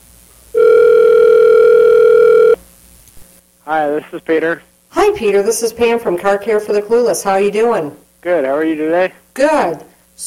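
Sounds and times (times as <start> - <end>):
telephone dial tone while placing a call: 0.6 - 2.6
speech: 3.7 - 10.2.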